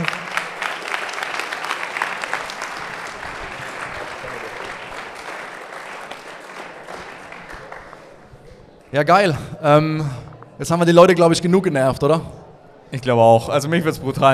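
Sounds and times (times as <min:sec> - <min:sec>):
audience applause: 0:00.0 - 0:09.0
laughter: 0:00.0 - 0:09.5
speech: 0:09.0 - 0:14.3.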